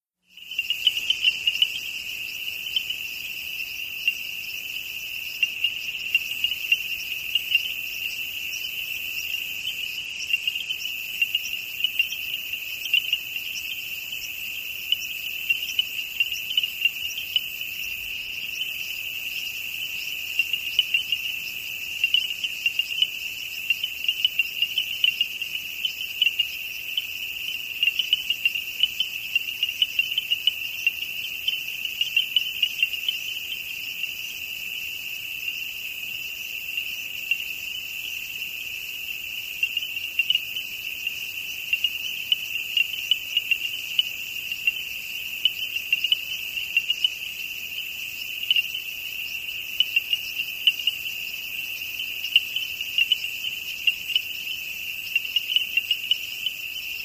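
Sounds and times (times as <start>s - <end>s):
frogs close-up: 0.2s - 57.0s
distant peepers: 0.3s - 57.0s.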